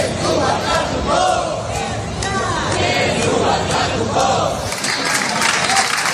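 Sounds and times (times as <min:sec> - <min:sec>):
large crowd chanting and shouting at festival homage: 0:00.0 - 0:06.1
crowd clapping: 0:04.6 - 0:06.1.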